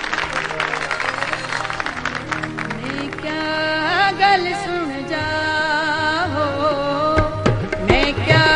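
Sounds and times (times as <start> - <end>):
audience clapping before a singer performs: 0.0 - 3.6
sustained musical tones: 0.0 - 8.4.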